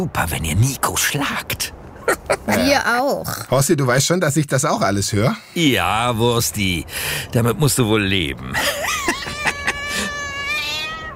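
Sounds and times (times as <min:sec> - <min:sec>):
speech: 0:00.0 - 0:09.4
laughter: 0:02.0 - 0:02.7, 0:08.5 - 0:10.6
cat meowing: 0:09.1 - 0:11.1.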